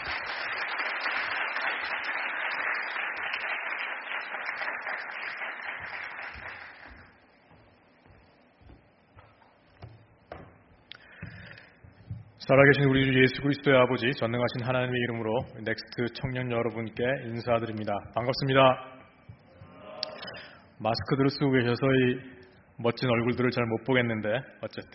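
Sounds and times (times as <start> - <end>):
audience applause: 0.0 - 7.2
speech: 12.5 - 18.9, 20.8 - 24.9.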